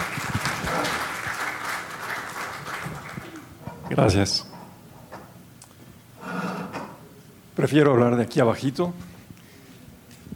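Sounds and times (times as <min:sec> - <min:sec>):
audience applause: 0:00.0 - 0:03.5
speech: 0:03.9 - 0:04.5, 0:07.7 - 0:09.1.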